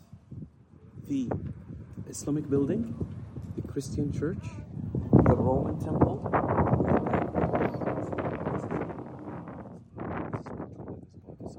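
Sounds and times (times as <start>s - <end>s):
wind buffeting the microphone at an archaeological site in Jordan: 0.0s - 11.5s
speech: 1.1s - 3.1s, 3.8s - 4.7s, 5.3s - 7.3s.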